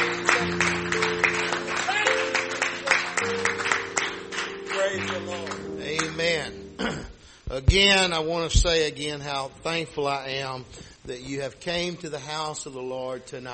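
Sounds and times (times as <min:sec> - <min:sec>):
audience clapping hands: 0:00.0 - 0:06.5
speech: 0:07.7 - 0:13.5.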